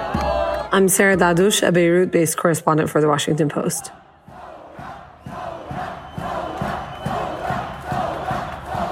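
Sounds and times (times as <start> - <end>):
speech: 0.7 - 4.0
large protest crowd chanting in unison: 3.6 - 8.8.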